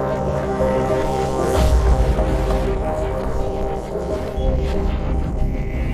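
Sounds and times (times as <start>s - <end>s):
piano trio playing in E flat: 0.0s - 5.8s.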